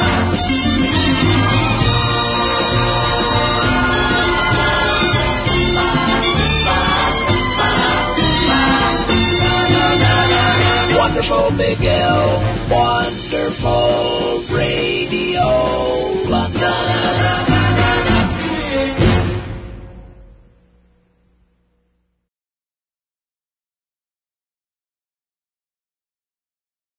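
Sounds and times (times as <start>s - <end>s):
radio station theme music: 0.0s - 21.0s.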